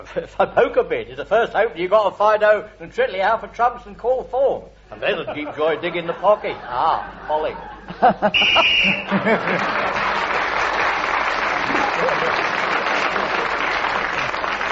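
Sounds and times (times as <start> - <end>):
speech: 0.0 - 10.3
laughter: 5.0 - 10.9, 11.5 - 14.6
game show whistle ending a round: 8.3 - 9.2.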